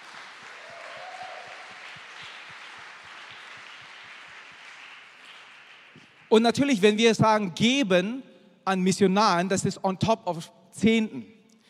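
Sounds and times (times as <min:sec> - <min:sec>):
audience applause: 0:00.0 - 0:06.3
speech: 0:06.0 - 0:11.4.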